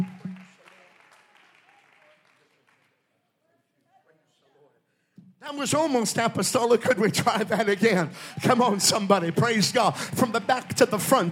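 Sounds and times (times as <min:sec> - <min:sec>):
audience clapping: 0:00.0 - 0:03.2, 0:06.6 - 0:11.3
speech: 0:05.4 - 0:11.3.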